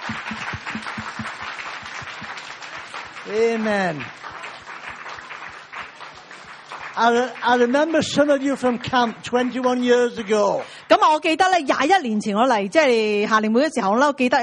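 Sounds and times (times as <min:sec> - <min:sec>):
audience standing and clapping: 0:00.0 - 0:11.3
speech: 0:03.3 - 0:04.2, 0:07.0 - 0:14.4.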